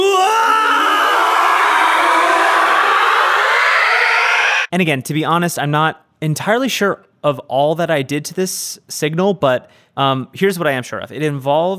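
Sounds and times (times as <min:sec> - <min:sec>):
pitched scream: 0:00.0 - 0:04.7
swirling time-warp sound effect: 0:00.8 - 0:04.7
speech: 0:04.8 - 0:11.7.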